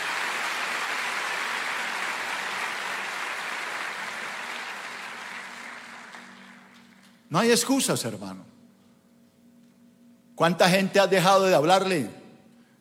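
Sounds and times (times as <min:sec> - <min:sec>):
audience applauding: 0:00.0 - 0:07.2
speech: 0:07.3 - 0:08.6, 0:10.4 - 0:12.2.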